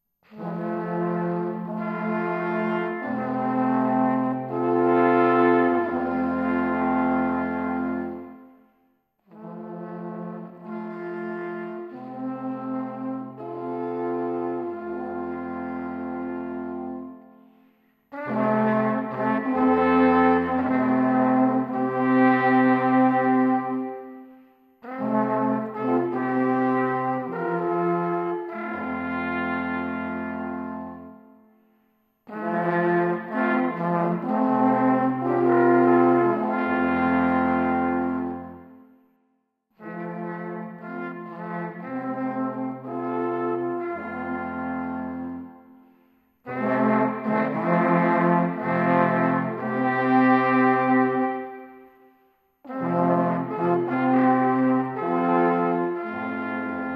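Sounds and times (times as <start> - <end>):
music: 0.0 - 56.9.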